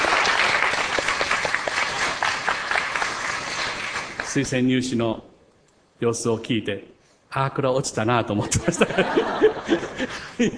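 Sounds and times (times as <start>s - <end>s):
audience applause: 0.0s - 4.4s
speech: 4.4s - 5.3s, 6.0s - 10.5s
laughter: 8.4s - 10.5s.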